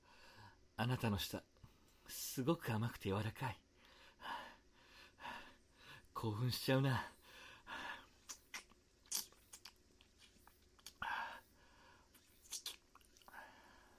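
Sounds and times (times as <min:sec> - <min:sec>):
speech: 0:00.8 - 0:01.5, 0:02.1 - 0:03.6, 0:06.2 - 0:07.2
soft wet kissing sounds: 0:08.2 - 0:11.0, 0:12.1 - 0:13.3.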